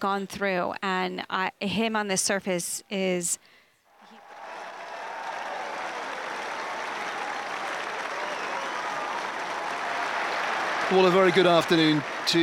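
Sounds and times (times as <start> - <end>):
speech: 0.0 - 3.6, 10.9 - 12.4
ripple of applause at tennis court: 4.0 - 12.4.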